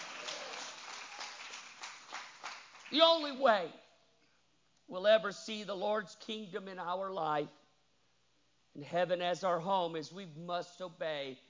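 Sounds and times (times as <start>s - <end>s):
church congregation clapping hands during a sermon: 0.0s - 3.5s
speech: 2.9s - 3.8s, 4.9s - 7.6s, 8.8s - 11.4s.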